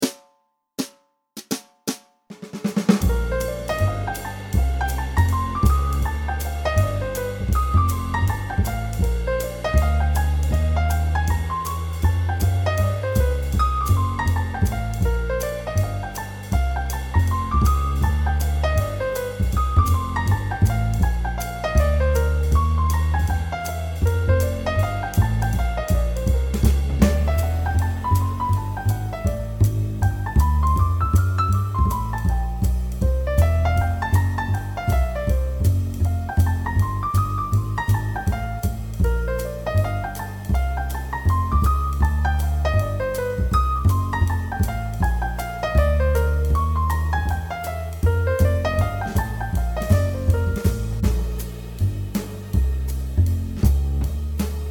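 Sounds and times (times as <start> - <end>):
basic bebop rhythm changes outline: 0.0 - 54.7.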